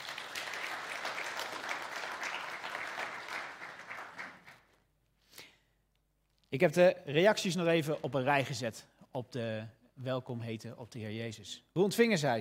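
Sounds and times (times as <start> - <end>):
applause for children's artworks and photos: 0.0 - 4.8
speech: 6.5 - 12.3.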